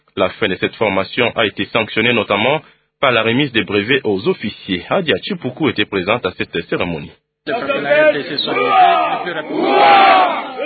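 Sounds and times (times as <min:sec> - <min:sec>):
speech: 0:00.2 - 0:10.6
soldiers shouting cries of joy: 0:07.5 - 0:10.6.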